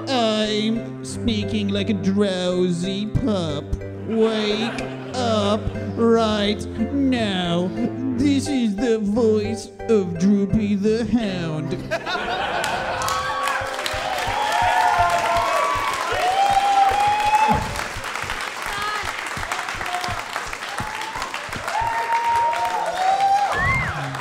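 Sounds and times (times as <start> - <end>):
speech: 0.0 - 12.5
laughter: 4.0 - 6.0, 11.8 - 14.6
audience applause: 12.3 - 24.1.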